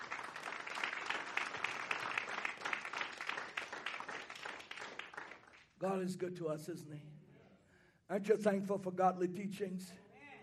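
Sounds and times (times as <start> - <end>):
crowd clapping: 0.0 - 5.8
speech: 5.8 - 7.2, 8.1 - 10.0.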